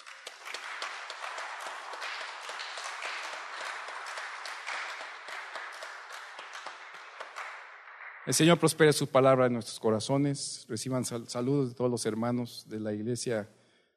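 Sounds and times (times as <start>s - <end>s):
audience applauding: 0.0s - 8.9s
speech: 8.3s - 13.6s.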